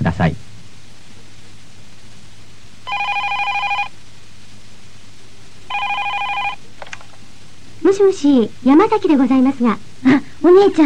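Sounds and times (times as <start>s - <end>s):
speech: 0.2s - 0.4s, 8.0s - 10.8s
telephone ringing: 2.9s - 3.9s, 5.7s - 6.7s.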